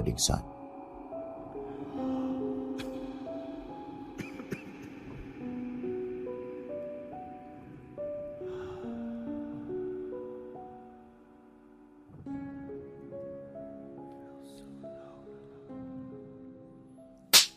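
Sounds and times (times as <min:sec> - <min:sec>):
soft melodic music: 0:00.0 - 0:17.5
man hard-slapping his pregnant wife in a small house on the coast: 0:17.4 - 0:17.5.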